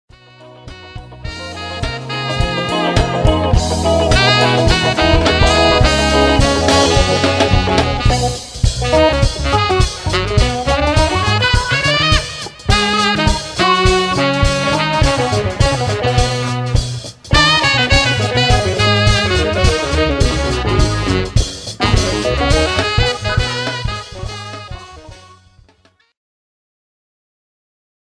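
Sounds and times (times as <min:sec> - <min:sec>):
jazz music: 0:00.1 - 0:26.1.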